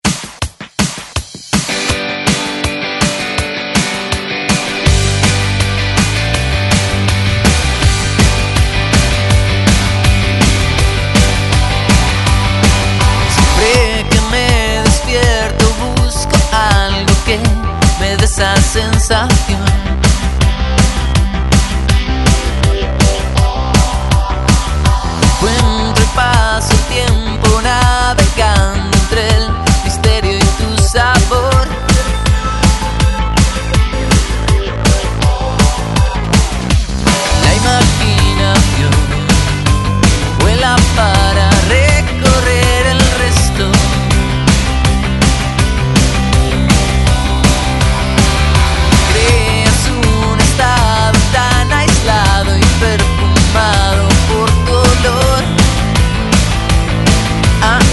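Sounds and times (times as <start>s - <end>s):
Latin rock drum loop at 162 BPM: 0.0s - 57.9s.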